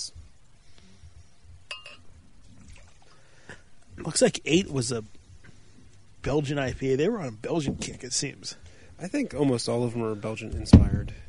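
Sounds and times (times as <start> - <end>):
sharp glassy clink: 1.7 - 2.1
water rinsing a glass at a beer tasting: 1.7 - 3.4
speech: 4.0 - 5.2, 6.2 - 11.2.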